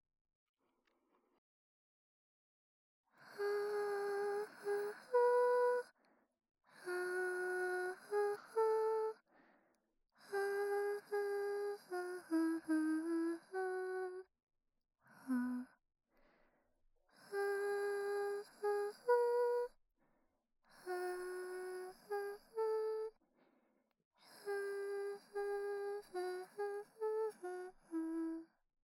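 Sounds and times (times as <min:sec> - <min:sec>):
person singing a lullaby: 0:03.2 - 0:05.9, 0:06.7 - 0:09.2, 0:10.2 - 0:14.3, 0:15.2 - 0:15.8, 0:17.2 - 0:19.8, 0:20.7 - 0:23.2, 0:24.2 - 0:28.5.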